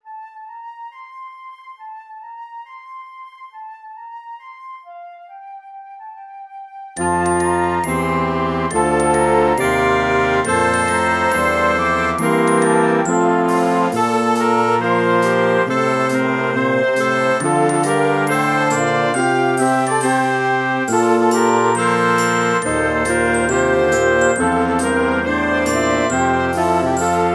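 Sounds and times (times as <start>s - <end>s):
national anthem music: 7.0s - 27.3s.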